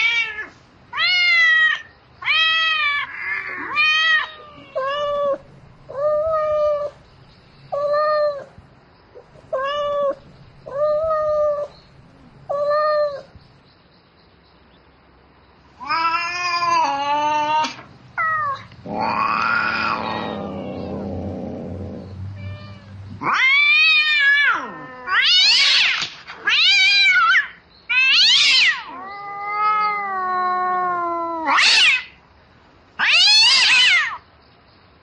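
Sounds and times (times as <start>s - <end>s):
cat meowing calling its mate: 0.0s - 7.0s, 9.4s - 13.4s, 15.8s - 21.6s, 22.3s - 32.2s, 33.0s - 34.2s.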